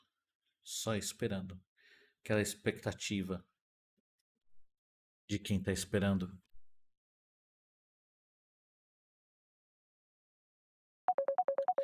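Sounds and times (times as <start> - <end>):
speech: 0.7 - 3.5, 5.3 - 6.5
phone ringtone during a live call-in session: 11.1 - 11.8.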